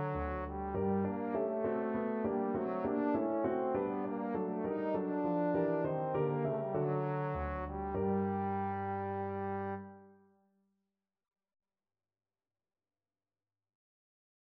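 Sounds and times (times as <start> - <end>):
trombone sonata: 0.0 - 10.2.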